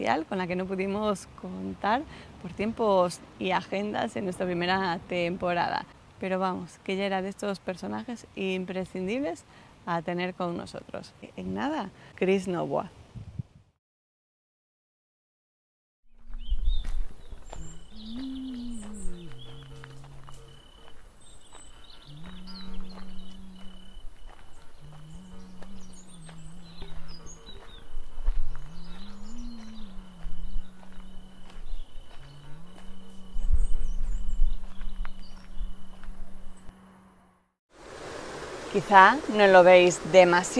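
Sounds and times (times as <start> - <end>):
speech: 0.0 - 13.0, 38.8 - 40.5
faint high bird chirps: 16.3 - 36.7
low wavering droning tone: 17.6 - 21.0, 22.1 - 37.3
river water flowing: 37.7 - 40.5.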